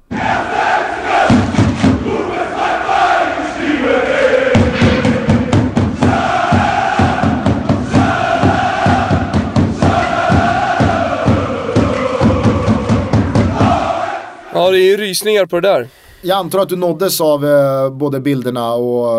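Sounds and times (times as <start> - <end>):
nearly 20000 Köln supporters marching and singing through London streets: 0.0 - 14.6
speech: 14.8 - 19.1.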